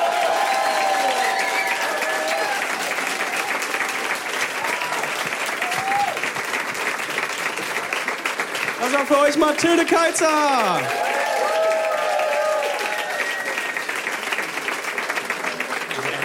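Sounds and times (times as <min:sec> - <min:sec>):
big audience applause: 0:00.0 - 0:16.2
speech: 0:09.0 - 0:11.0.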